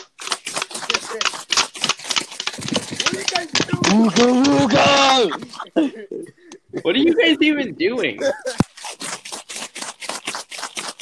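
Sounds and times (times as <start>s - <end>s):
rubbing on paper: 0.0s - 5.6s, 8.2s - 10.9s
laughter: 2.9s - 8.7s
speech: 3.9s - 8.6s.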